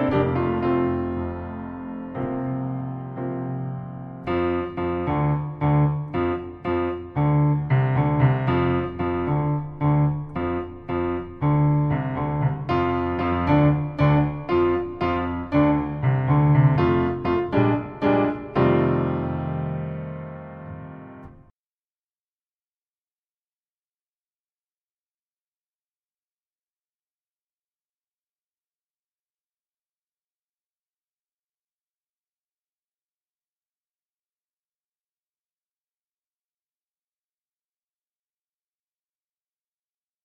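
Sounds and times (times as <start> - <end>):
meditative piano music: 0.0 - 21.5.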